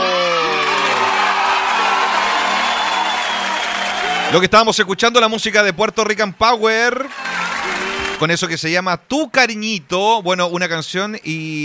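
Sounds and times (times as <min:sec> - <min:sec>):
crowd applauding and cheering with whoops and yells: 0:00.0 - 0:04.7, 0:06.9 - 0:08.3
speech: 0:04.3 - 0:07.3, 0:08.2 - 0:11.6.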